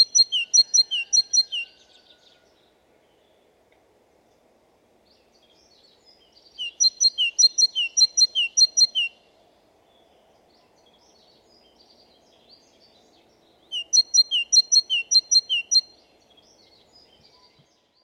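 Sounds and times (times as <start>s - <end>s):
great tit song: 0.0s - 1.7s, 5.3s - 9.2s, 10.6s - 17.8s.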